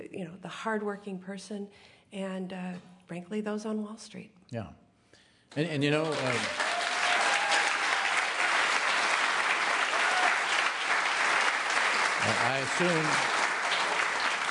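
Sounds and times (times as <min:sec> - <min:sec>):
speech: 0:00.2 - 0:04.8, 0:05.5 - 0:06.6, 0:12.4 - 0:13.4
large audience applause: 0:05.8 - 0:14.4.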